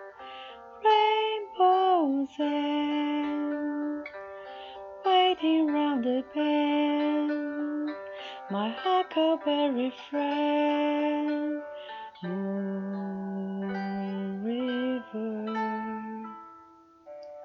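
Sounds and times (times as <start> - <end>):
person singing karaoke with a Brazilian accent: 0.8 - 4.0, 5.0 - 16.5.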